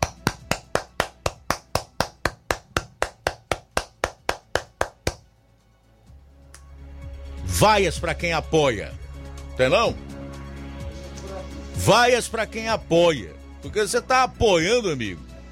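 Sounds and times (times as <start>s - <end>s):
clapping: 0.0s - 5.2s
speech: 7.6s - 9.0s, 9.6s - 10.1s, 11.8s - 15.3s.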